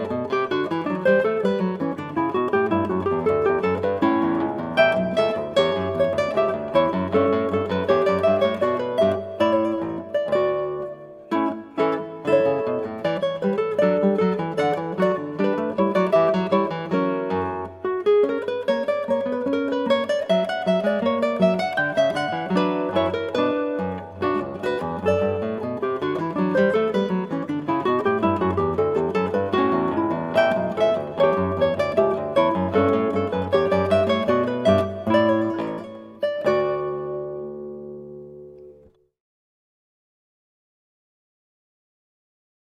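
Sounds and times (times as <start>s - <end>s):
eight-string guitar playing a baroque gavotte: 0.0s - 39.0s.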